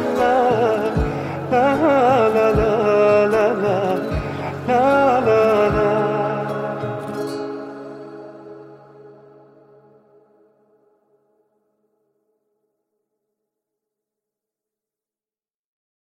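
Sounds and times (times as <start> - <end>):
guitar music: 0.0 - 10.5.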